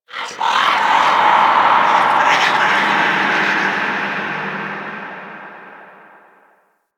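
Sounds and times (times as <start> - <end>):
ambient soundscape: 0.1 - 6.6.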